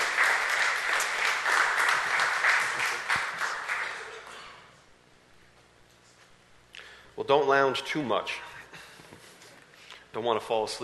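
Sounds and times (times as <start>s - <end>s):
crowd applauding: 0.0s - 4.5s
speech: 7.3s - 8.5s, 10.1s - 10.8s.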